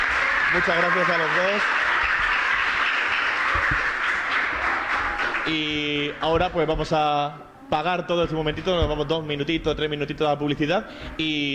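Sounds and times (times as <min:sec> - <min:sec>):
applause: 0:00.0 - 0:05.7
speech: 0:00.5 - 0:01.8, 0:05.5 - 0:11.5.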